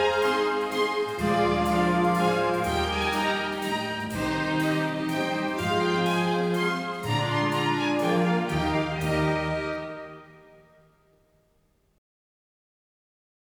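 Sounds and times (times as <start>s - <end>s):
large children's choir singing: 0.0s - 10.3s.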